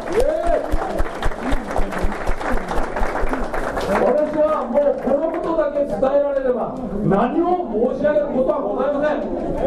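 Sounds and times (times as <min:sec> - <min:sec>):
audience applause: 0:00.0 - 0:05.7
speech: 0:06.0 - 0:09.6.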